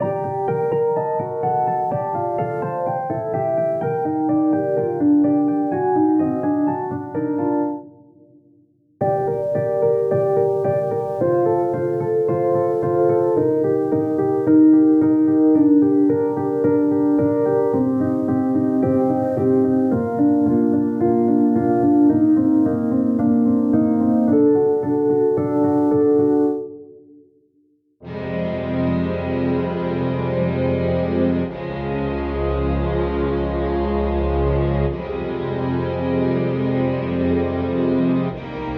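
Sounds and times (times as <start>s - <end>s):
classical music: 0.0s - 8.3s, 9.0s - 27.0s, 28.0s - 38.7s.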